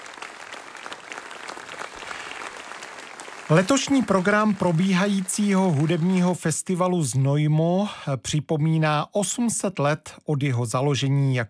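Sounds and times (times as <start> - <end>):
audience applause: 0.0 - 6.4
speech: 3.5 - 11.4.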